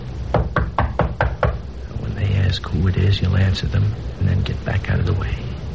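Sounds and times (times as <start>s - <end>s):
knocking: 0.3s - 1.7s
speech: 2.6s - 5.6s.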